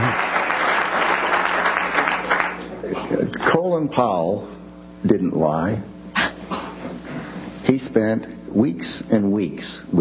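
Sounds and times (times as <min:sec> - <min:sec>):
crowd applause: 0:00.0 - 0:02.8
speech: 0:03.7 - 0:05.9, 0:07.7 - 0:09.9.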